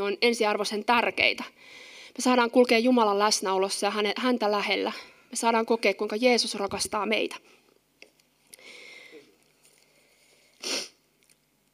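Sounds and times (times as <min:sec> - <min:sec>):
speech: 0:00.0 - 0:07.6
tearful speaker sniffling while crying: 0:10.5 - 0:11.0.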